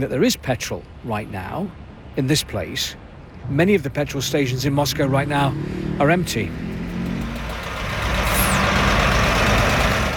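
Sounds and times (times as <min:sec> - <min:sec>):
speech: 0:00.0 - 0:06.7
vehicles idling in a queue at a petrol station: 0:02.7 - 0:10.1
high-pitched squeal: 0:07.9 - 0:09.6.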